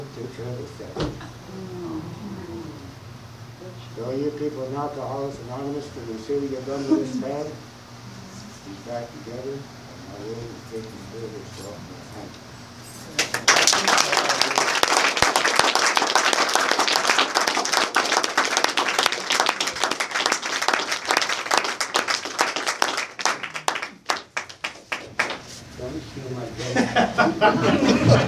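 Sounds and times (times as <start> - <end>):
speech: 0.2 - 1.7, 4.0 - 7.7, 8.7 - 12.5, 26.2 - 28.2
audience applause: 13.2 - 25.5
audience chuckling: 26.6 - 28.2.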